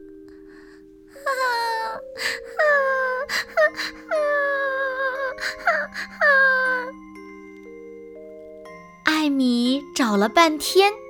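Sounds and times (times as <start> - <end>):
baby bird crying: 1.2 - 7.0
speech: 10.1 - 11.0.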